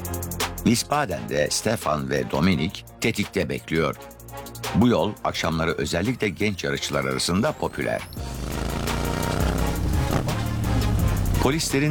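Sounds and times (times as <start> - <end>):
speech: 0.6 - 8.4, 11.4 - 11.8
approaching motorcycle: 8.2 - 11.0.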